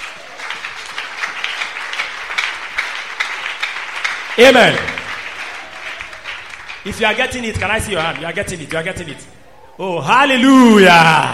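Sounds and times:
audience clapping: 0:00.0 - 0:09.2
speech: 0:04.4 - 0:05.0, 0:06.8 - 0:11.3.

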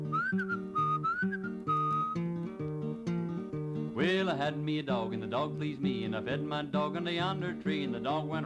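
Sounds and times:
speech: 0:00.0 - 0:00.8, 0:04.0 - 0:08.4
whistled imitation of a bird call: 0:00.0 - 0:02.2
instrumental accompaniment: 0:00.0 - 0:04.0.

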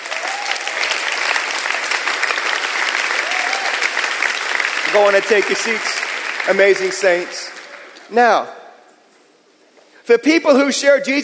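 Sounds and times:
audience applause: 0:00.0 - 0:08.1
speech: 0:04.9 - 0:07.5, 0:08.1 - 0:08.6, 0:10.1 - 0:11.2.

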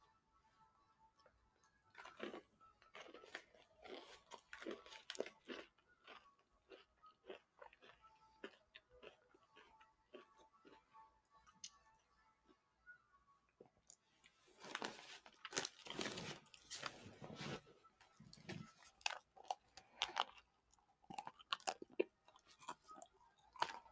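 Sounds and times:
crunchy bites and chewing of a unicorn ice cream drumstick with crumbles: 0:01.9 - 0:11.7, 0:14.6 - 0:16.6, 0:18.5 - 0:23.9
ice cream drumstick wrapper crinkling: 0:14.6 - 0:17.2.

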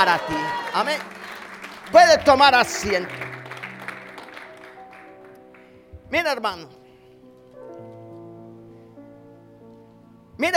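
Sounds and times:
speech: 0:00.0 - 0:01.2, 0:01.9 - 0:03.4, 0:06.1 - 0:06.8
audience applause: 0:00.0 - 0:05.8.

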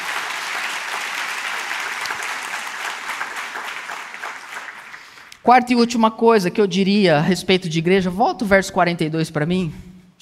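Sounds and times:
audience applause: 0:00.0 - 0:05.4
speech: 0:05.5 - 0:10.1.

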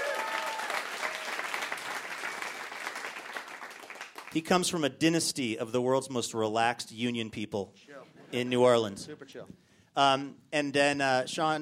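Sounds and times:
audience applause: 0:00.0 - 0:04.4
speech: 0:04.4 - 0:11.6.

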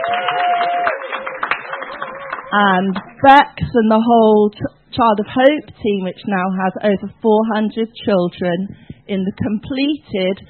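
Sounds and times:
audience clapping: 0:00.0 - 0:03.3
speech: 0:02.5 - 0:10.4.

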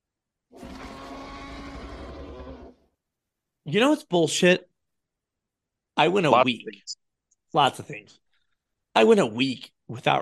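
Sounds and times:
T-Rex roar sound effect: 0:00.5 - 0:02.9
speech: 0:03.7 - 0:04.7, 0:06.0 - 0:08.2, 0:09.0 - 0:10.2.

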